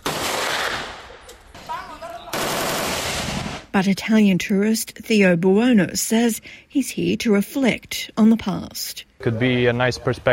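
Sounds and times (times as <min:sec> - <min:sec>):
AK-47, M-16 and M-60 machine guns shooting targets: 0:00.0 - 0:01.0, 0:02.3 - 0:03.7
speech: 0:03.8 - 0:10.3.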